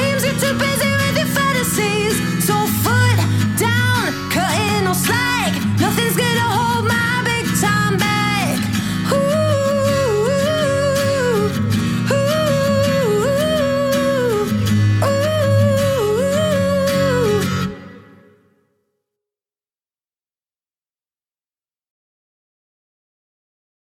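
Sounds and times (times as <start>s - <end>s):
acoustic music: 0.0s - 18.8s.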